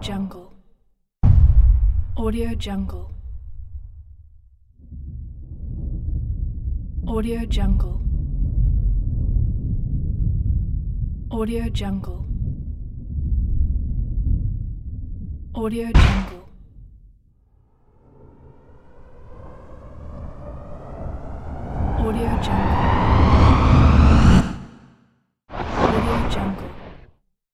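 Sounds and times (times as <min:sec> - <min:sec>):
thunder: 0:01.3 - 0:11.3, 0:12.2 - 0:15.5, 0:17.9 - 0:24.9, 0:25.5 - 0:27.1.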